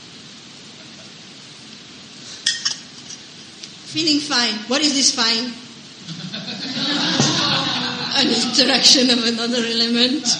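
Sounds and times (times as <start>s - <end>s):
soft hiss: 0.0s - 10.3s
glass and dishes clinking: 2.4s - 3.2s
speech: 3.9s - 5.6s, 8.2s - 10.3s
laughter: 6.0s - 9.3s, 10.1s - 10.3s.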